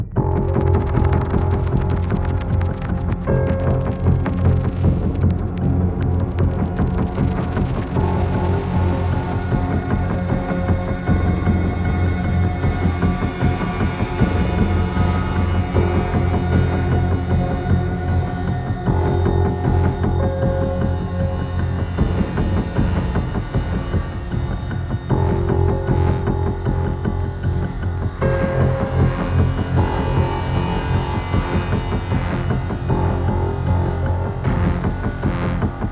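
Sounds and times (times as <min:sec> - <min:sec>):
dystopian music: 0:00.2 - 0:35.9.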